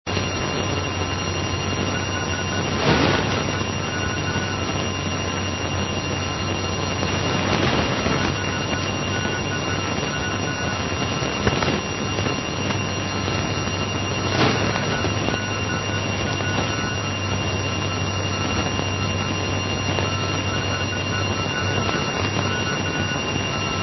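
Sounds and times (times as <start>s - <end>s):
non-directional beacon signal: 0.1s - 23.8s.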